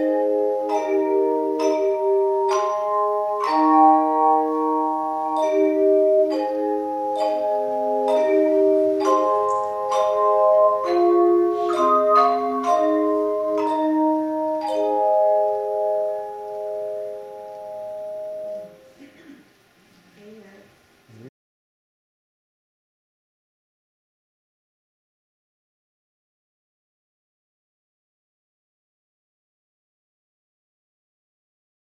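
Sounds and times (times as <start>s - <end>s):
chimes: 0.7s - 18.9s.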